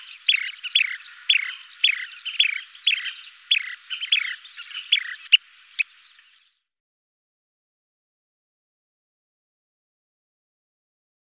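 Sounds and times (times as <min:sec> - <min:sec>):
Kentish plover chirping trills: 0:00.0 - 0:06.6.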